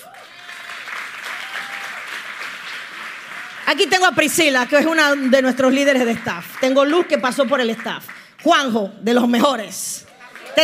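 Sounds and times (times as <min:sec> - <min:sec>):
whistles and cheers: 0:00.0 - 0:02.2
audience applause: 0:00.0 - 0:08.3, 0:10.1 - 0:10.6
speech: 0:03.7 - 0:10.0.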